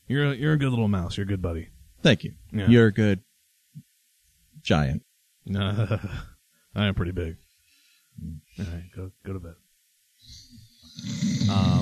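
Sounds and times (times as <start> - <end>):
speech: 0.1 - 3.3, 4.6 - 7.4, 8.2 - 9.6, 11.0 - 11.7
voice imitating snoring: 10.3 - 11.7.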